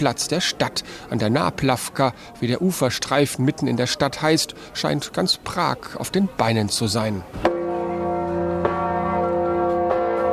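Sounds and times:
speech: 0.0s - 7.5s
large bell ringing on a river pontoon: 7.4s - 10.3s.

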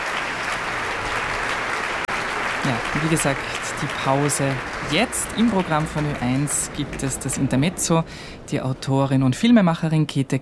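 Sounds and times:
large concert audience applause for conductor: 0.0s - 8.1s
speech: 2.6s - 10.3s.

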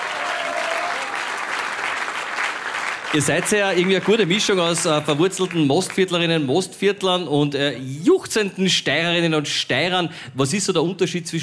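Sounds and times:
audience applause: 0.0s - 6.2s
speech: 3.1s - 11.4s.

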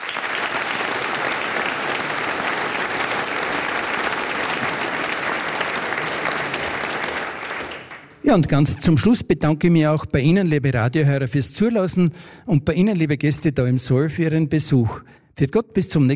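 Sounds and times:
audience applause: 0.0s - 8.2s
speech: 8.2s - 16.1s.

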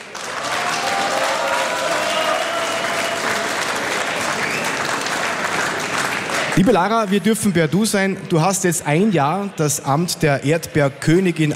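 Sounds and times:
audience applause: 0.0s - 7.4s
speech: 6.6s - 11.5s.

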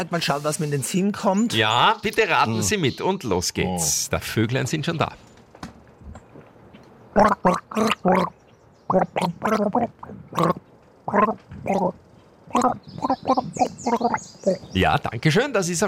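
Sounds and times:
speech: 0.0s - 5.3s, 7.2s - 15.8s
person gargling: 7.2s - 8.3s, 8.9s - 14.2s.

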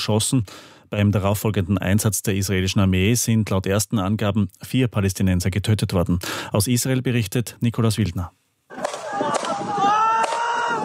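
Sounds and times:
speech: 0.0s - 8.4s
gunshots filmed on mobile phone: 8.7s - 10.5s
people screaming: 8.7s - 10.8s.

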